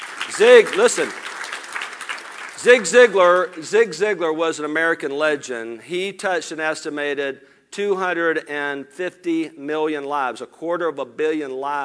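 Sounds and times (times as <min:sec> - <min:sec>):
audience applause: 0:00.0 - 0:03.6
speech: 0:00.4 - 0:01.3, 0:02.6 - 0:11.8.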